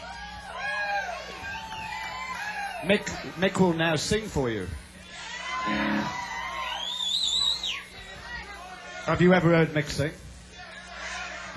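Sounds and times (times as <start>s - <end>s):
audience cheering: 0.0s - 9.1s
speech: 2.8s - 4.8s, 9.1s - 10.2s.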